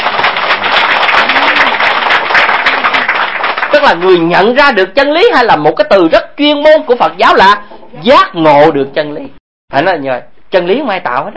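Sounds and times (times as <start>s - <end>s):
crowd applause: 0.0s - 4.2s
speech: 3.8s - 11.3s.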